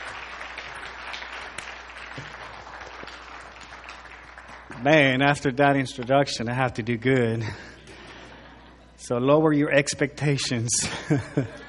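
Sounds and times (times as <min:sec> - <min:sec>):
church audience applause welcoming a pastor at a Sunday service: 0:00.0 - 0:05.2
speech: 0:02.2 - 0:02.4, 0:04.7 - 0:07.7, 0:09.1 - 0:11.6
laughter: 0:10.8 - 0:11.6.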